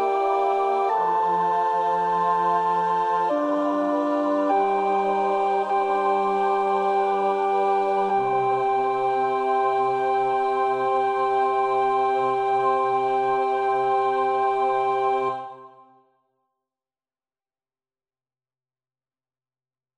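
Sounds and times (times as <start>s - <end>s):
alto choir part practice singing: 0.0s - 16.0s.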